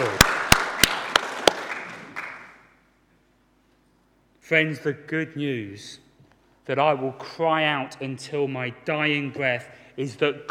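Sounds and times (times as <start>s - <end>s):
audience applause: 0.0s - 2.6s
speech: 4.5s - 6.0s, 6.6s - 10.4s.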